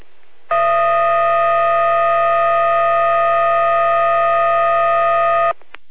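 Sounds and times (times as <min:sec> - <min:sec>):
fire brigade dispatch radio alarm beeping tones: 0:00.5 - 0:05.5.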